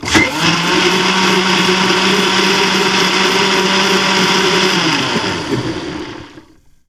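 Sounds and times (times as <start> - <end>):
blender running on a kitchen counter: 0.0 - 6.5.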